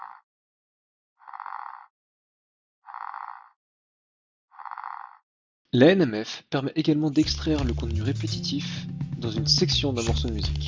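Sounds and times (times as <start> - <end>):
frog croaking: 0.0 - 0.2, 1.2 - 1.9, 2.8 - 3.6, 4.5 - 5.3
speech: 5.7 - 10.6.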